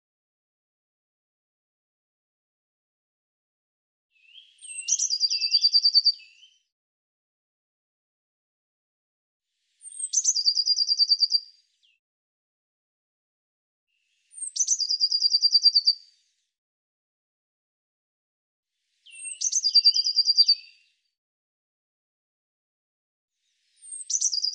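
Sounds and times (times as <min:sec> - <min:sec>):
bird song trills: 0:04.2 - 0:06.7, 0:09.7 - 0:12.0, 0:14.0 - 0:16.1, 0:19.0 - 0:21.0, 0:23.5 - 0:24.5.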